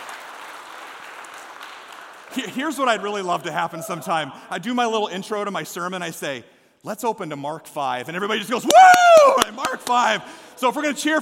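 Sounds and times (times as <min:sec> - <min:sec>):
audience clapping: 0:00.0 - 0:03.2, 0:08.7 - 0:10.2
speech: 0:02.3 - 0:11.2.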